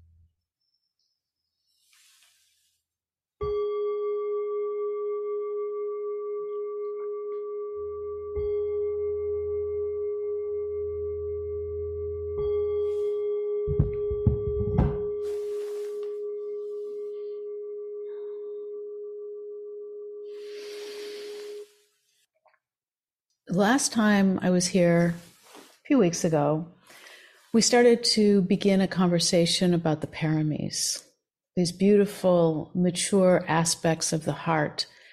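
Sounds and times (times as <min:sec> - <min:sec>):
meditation bell ringing: 0:03.4 - 0:21.7
soft low thumps and rumbles: 0:13.7 - 0:15.2
speech: 0:23.7 - 0:25.3, 0:26.0 - 0:26.8, 0:27.6 - 0:35.0.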